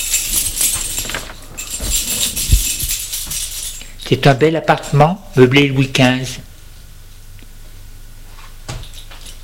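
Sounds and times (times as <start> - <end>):
apartment door being opened: 0.2 - 3.3
speech: 4.1 - 6.4.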